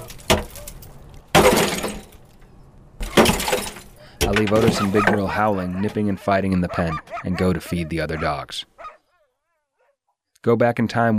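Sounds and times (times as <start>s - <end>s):
ice cracking and shattering: 0.0s - 2.4s, 3.0s - 4.9s
speech: 4.3s - 8.7s, 10.4s - 11.1s.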